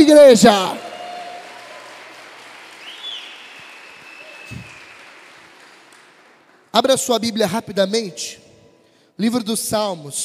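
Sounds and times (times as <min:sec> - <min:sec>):
speech: 0:00.1 - 0:00.8, 0:06.8 - 0:08.4, 0:09.2 - 0:10.2
church audience applause: 0:00.5 - 0:06.7.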